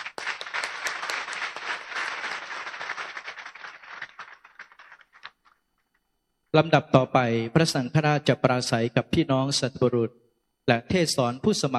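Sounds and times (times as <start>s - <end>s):
audience applauding at priest ordination: 0.0s - 5.3s
speech: 6.5s - 11.7s.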